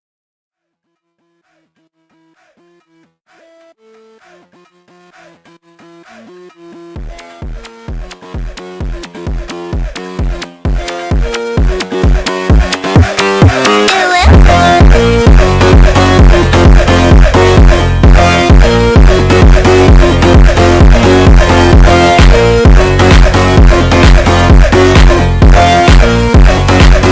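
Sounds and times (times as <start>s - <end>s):
phonk music: 1.4s - 27.1s.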